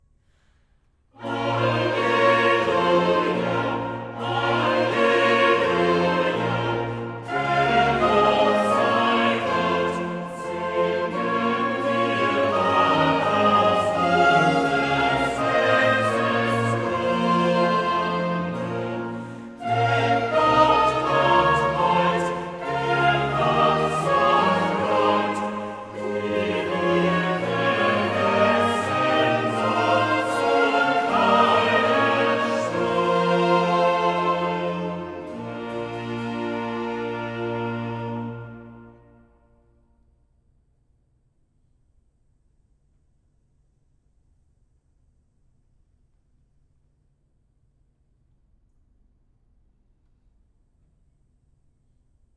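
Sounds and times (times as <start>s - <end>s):
choir singing a cantata: 1.2s - 39.4s.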